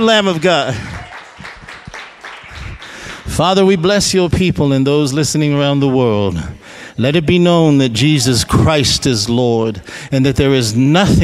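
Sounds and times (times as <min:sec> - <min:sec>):
speech: 0:00.0 - 0:01.0, 0:03.3 - 0:11.2
audience clapping hands: 0:00.0 - 0:03.7.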